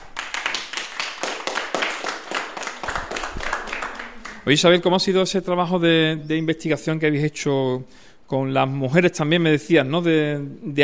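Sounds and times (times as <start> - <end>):
audience applause: 0.0 - 4.8
speech: 4.5 - 10.8.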